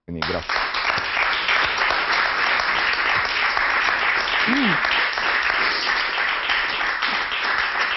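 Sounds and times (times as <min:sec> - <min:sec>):
sustained audience applause: 0:00.2 - 0:07.9
faint vocal cry: 0:04.5 - 0:04.9.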